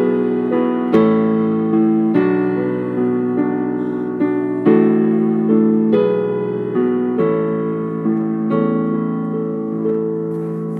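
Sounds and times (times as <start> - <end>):
piano: 0.0 - 10.7.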